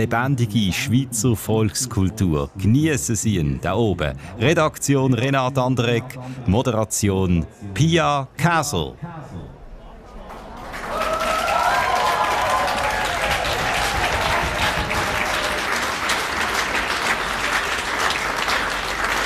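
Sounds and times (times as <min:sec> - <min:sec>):
speech: 0:00.0 - 0:09.6
audience applause at outdoor yodelling festival: 0:10.3 - 0:19.2.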